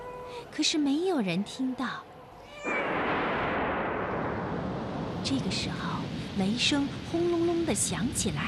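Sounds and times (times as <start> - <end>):
speech: 0.4 - 2.8, 5.2 - 8.4
cat meowing: 2.4 - 2.9
heavy rain pouring: 2.6 - 8.4.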